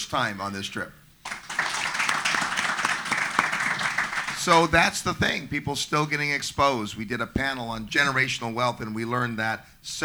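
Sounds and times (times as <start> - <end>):
speech: 0.1 - 1.0, 4.4 - 10.0
audience applause: 1.2 - 5.0.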